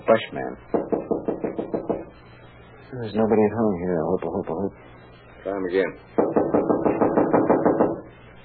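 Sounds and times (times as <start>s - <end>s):
speech: 0.1s - 0.9s, 2.9s - 6.2s
knuckles knocking on a wooden door: 0.7s - 2.1s, 6.2s - 8.0s.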